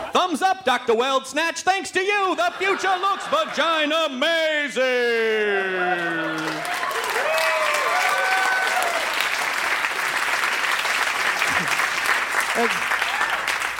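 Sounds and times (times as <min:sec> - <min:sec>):
speech: 0:00.6 - 0:07.5, 0:12.6 - 0:12.8
laughter: 0:02.2 - 0:04.5, 0:05.1 - 0:06.8, 0:11.4 - 0:11.9, 0:12.5 - 0:12.9
cheers and voices: 0:02.5 - 0:09.1
crowd applauding: 0:05.5 - 0:13.7.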